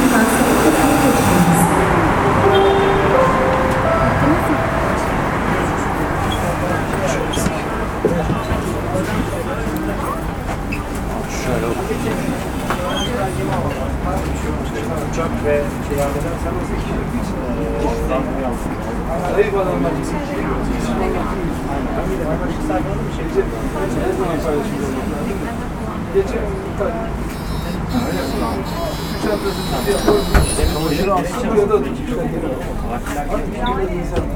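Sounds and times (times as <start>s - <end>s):
metrobus soundscape: 0.0s - 34.3s.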